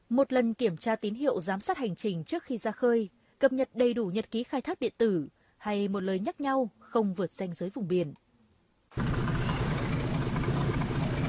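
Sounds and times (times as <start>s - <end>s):
speech: 0.1s - 8.2s
fishing boat engine idling at Đề Di fishing port, Gia Lai: 9.0s - 11.2s.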